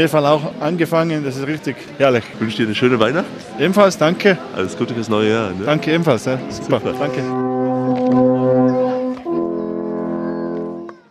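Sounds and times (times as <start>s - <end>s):
speech: 0.0s - 7.5s
beginner blowing an alphorn: 5.5s - 11.0s.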